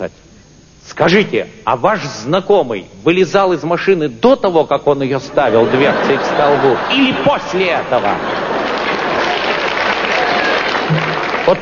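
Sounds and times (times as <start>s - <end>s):
speech: 0.0s - 0.2s, 0.9s - 8.5s, 10.9s - 11.6s
laughter: 5.2s - 11.6s
audience applauding: 7.9s - 11.6s.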